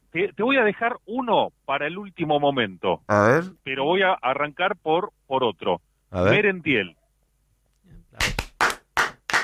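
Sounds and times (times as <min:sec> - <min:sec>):
speech: 0:00.1 - 0:07.0
applause: 0:08.2 - 0:09.4.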